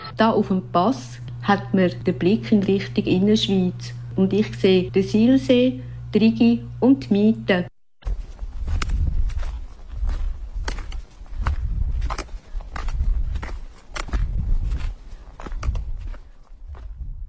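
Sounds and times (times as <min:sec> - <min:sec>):
speech: 0:00.2 - 0:07.7
footsteps of a hiker walking downhill on a mountain path: 0:08.0 - 0:17.2.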